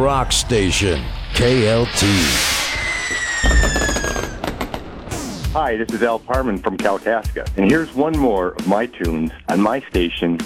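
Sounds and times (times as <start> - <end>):
speech: 0.0 - 2.6, 5.5 - 10.4
fireworks exploding: 2.8 - 5.5.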